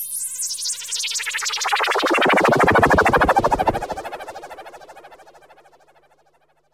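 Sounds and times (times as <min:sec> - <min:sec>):
flyby: 0:01.9 - 0:04.2.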